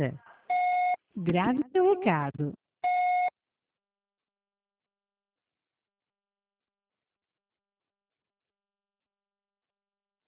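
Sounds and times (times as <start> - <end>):
speech: 0.0 - 0.2, 1.2 - 2.6
telephone busy signal tones: 2.8 - 3.3.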